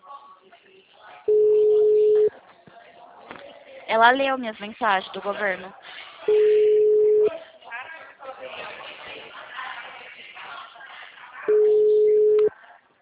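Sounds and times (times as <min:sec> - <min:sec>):
telephone busy signal on an unanswered call: 0:01.3 - 0:02.3, 0:06.3 - 0:07.3, 0:11.5 - 0:12.5
speech: 0:03.9 - 0:06.6.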